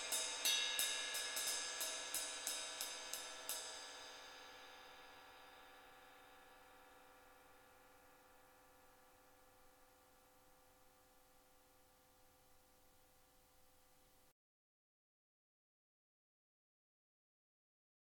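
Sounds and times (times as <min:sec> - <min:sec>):
shiny 20-inch rock ride cymbal: 0:00.0 - 0:14.2.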